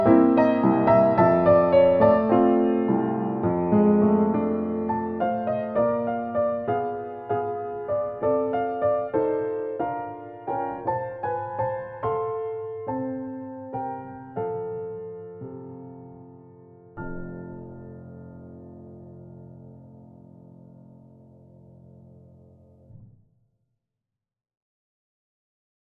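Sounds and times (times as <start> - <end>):
old black grand piano: 0.0 - 23.0.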